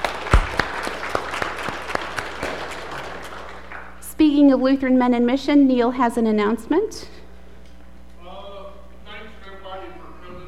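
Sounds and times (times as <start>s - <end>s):
audience applause: 0.0s - 4.0s
speech: 4.2s - 7.2s.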